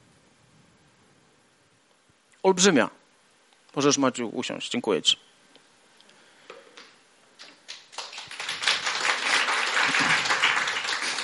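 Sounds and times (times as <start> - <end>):
speech: 2.4 - 3.0, 3.7 - 5.3
audience applause: 7.7 - 11.2.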